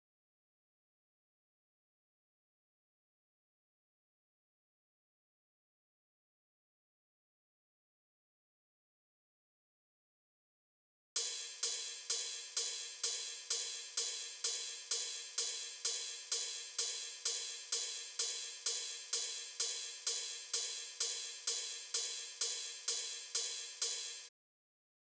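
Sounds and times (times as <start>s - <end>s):
ride cymbal: 11.2s - 24.3s.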